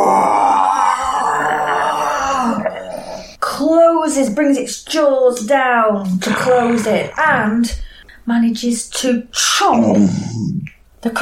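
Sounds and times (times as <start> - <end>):
person imitating a bear's roar: 0.0 - 3.3, 6.1 - 7.6, 9.7 - 10.7
speech: 4.2 - 10.4.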